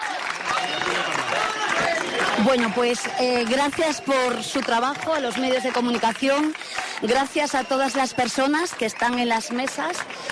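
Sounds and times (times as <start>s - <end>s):
applause from gathered press: 0.0s - 10.3s
murmur of crowd voices: 0.0s - 10.3s
speech: 2.4s - 10.3s.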